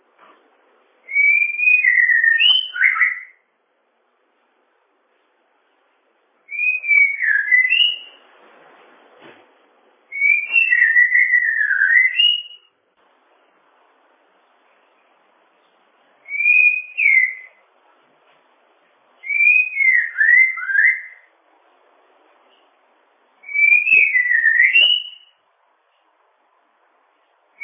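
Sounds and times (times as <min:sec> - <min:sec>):
bird whistled song: 0:01.0 - 0:03.5, 0:06.5 - 0:08.2, 0:10.1 - 0:12.7, 0:16.2 - 0:17.6, 0:19.2 - 0:21.3, 0:23.4 - 0:25.4.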